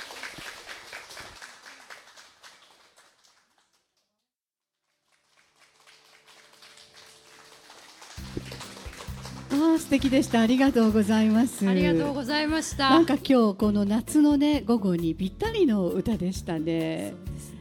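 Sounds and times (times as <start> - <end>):
applause from a large audience: 0.0 - 4.0, 4.9 - 12.1
speech: 9.5 - 17.3.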